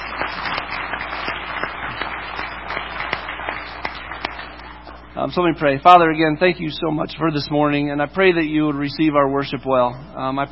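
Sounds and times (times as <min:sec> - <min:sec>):
church congregation clapping for the worship team: 0:00.0 - 0:05.0
speech: 0:05.2 - 0:10.5.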